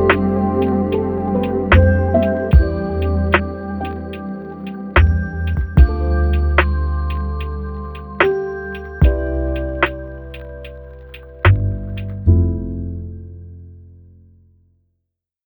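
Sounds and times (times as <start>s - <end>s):
sad lo-fi beat: 0.0s - 12.8s.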